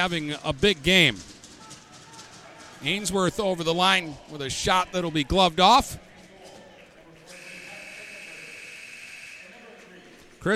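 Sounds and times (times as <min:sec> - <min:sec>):
speech: 0:00.0 - 0:01.4, 0:02.8 - 0:06.0
hockey game final buzzer: 0:07.3 - 0:09.6.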